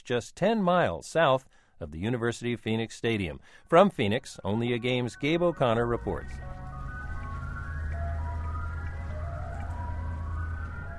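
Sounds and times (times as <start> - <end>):
speech: 0.1 - 6.6
ice cream truck jingle near Our Lady of Guadalupe Monastery: 3.8 - 10.9.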